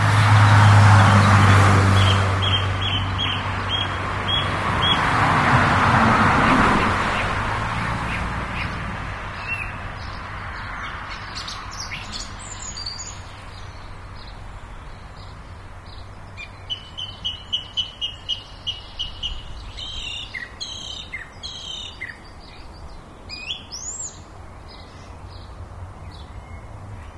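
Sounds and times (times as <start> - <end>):
birds: 0.0 - 27.1
cars: 0.0 - 27.1.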